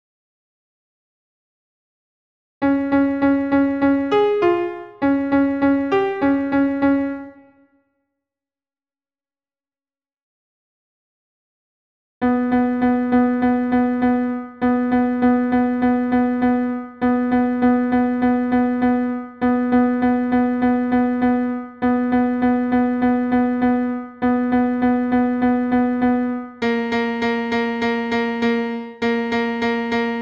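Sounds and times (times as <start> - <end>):
solo piano tango: 2.6 - 7.4, 12.2 - 30.2.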